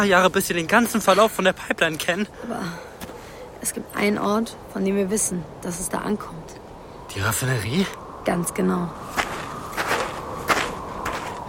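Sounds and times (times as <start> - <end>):
speech: 0.0 - 3.0, 3.6 - 9.2
hiss: 0.0 - 10.9
footsteps of someone walking with wet feet: 9.1 - 11.4.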